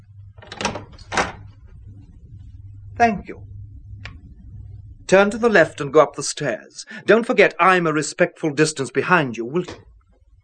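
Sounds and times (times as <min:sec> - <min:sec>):
steady low hum: 0:00.0 - 0:08.0
door being opened: 0:00.3 - 0:01.7
speech: 0:03.0 - 0:03.5, 0:05.1 - 0:09.9.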